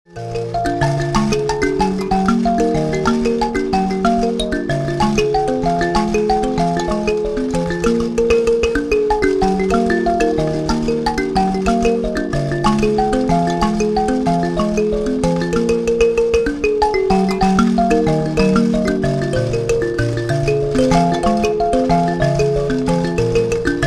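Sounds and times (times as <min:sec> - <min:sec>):
mbira: 0:00.1 - 0:23.8.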